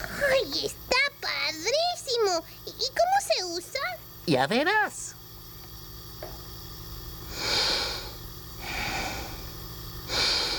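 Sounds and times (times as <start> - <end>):
faint steady hum: 0.0 - 10.5
speech: 0.5 - 0.8, 4.3 - 5.2
breathing through a nebulizer: 7.2 - 10.5.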